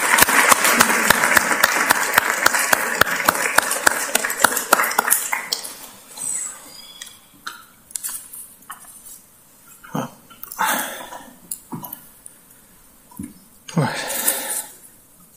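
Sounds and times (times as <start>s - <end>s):
round of applause: 0.0s - 5.9s.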